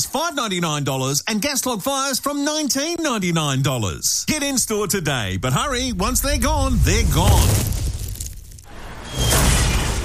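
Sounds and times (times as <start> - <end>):
speech: 0.1 - 7.8
roof and carport smashed by a falling space capsule: 6.0 - 10.0
shattering debris: 6.9 - 10.0.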